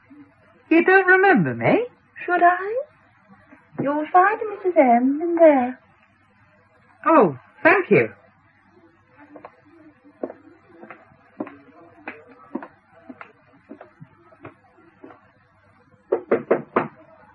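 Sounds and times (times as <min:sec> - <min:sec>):
speech: 0:00.7 - 0:02.9, 0:03.8 - 0:05.8, 0:07.0 - 0:08.2
knocking on a door: 0:16.1 - 0:17.0.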